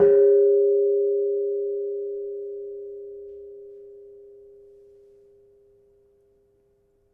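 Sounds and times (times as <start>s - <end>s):
kenong gong of a gamelan: 0.0s - 5.2s.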